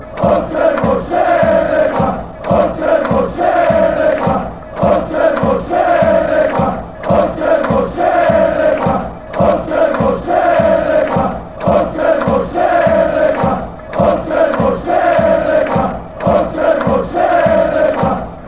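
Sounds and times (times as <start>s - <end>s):
chant: 0.0s - 18.4s.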